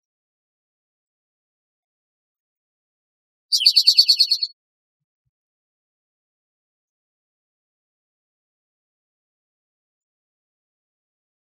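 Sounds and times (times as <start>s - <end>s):
spotted towhee trill: 3.5s - 4.5s.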